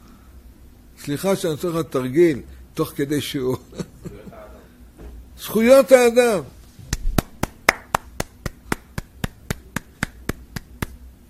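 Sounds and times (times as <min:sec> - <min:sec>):
speech: 0:01.0 - 0:03.8, 0:05.4 - 0:06.6
hand clapping: 0:06.9 - 0:11.1.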